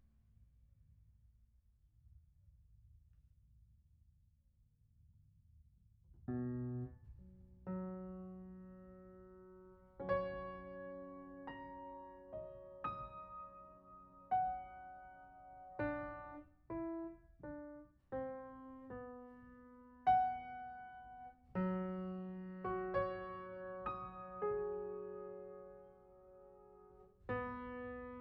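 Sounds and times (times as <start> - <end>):
piano: 6.2 - 28.1.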